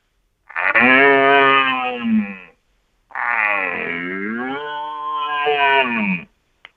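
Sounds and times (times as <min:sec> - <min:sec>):
human voice through call horn imitating young red deer stag rutting roar: 0:00.5 - 0:02.5, 0:03.1 - 0:06.3.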